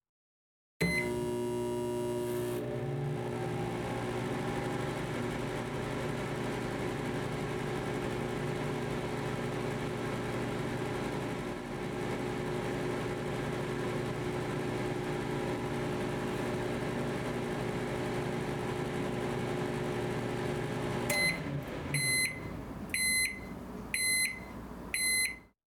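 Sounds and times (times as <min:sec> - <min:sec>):
microwave: 0:00.8 - 0:25.5.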